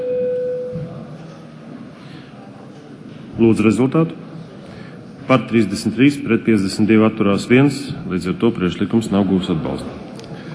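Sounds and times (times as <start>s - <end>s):
parliament voting-mode electronic signal tone: 0.0s - 0.8s
low murmur of room noise: 0.0s - 10.5s
speech: 3.4s - 4.3s, 5.3s - 10.0s.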